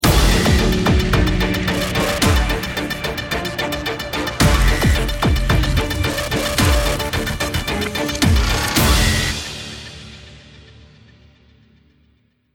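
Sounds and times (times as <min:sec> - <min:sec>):
round ten second countdown: 0:00.0 - 0:09.6.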